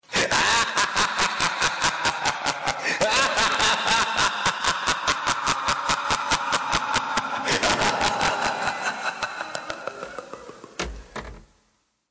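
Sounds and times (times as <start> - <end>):
person laughing: 0.1 - 11.0.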